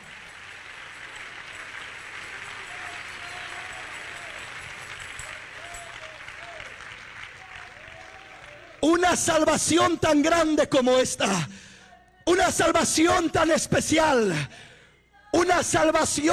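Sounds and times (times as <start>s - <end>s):
audience clapping: 0.0s - 11.5s
speech: 8.9s - 11.7s, 12.4s - 14.7s, 15.4s - 16.3s.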